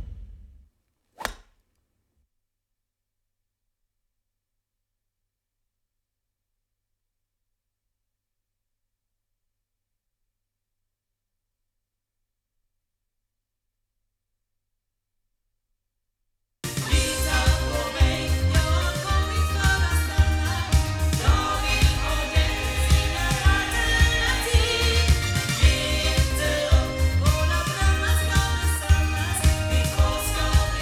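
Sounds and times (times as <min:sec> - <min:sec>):
sound from loudspeakers: 0:16.7 - 0:30.7.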